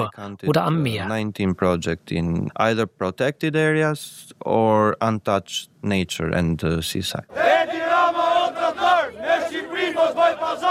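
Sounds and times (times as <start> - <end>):
speech: 0.0 - 7.7
crowd of protesters chanting slogans in unison: 7.3 - 10.6.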